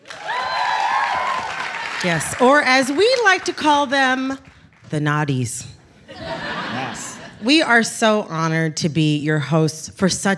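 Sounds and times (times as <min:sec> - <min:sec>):
audience round of applause: 0:00.0 - 0:03.6
speech: 0:02.0 - 0:06.4, 0:07.4 - 0:10.3
laughter: 0:06.0 - 0:07.6.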